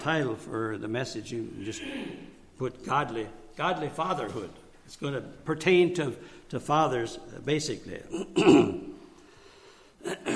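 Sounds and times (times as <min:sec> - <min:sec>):
speech: 0:00.0 - 0:08.9
man clearing throat with a short rough cough: 0:01.6 - 0:02.4, 0:08.1 - 0:09.0, 0:10.0 - 0:10.3.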